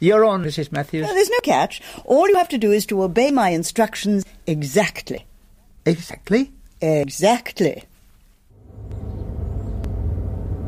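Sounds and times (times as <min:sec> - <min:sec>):
speech: 0:00.0 - 0:07.9
low engine rumble inside a moving car: 0:08.5 - 0:10.6.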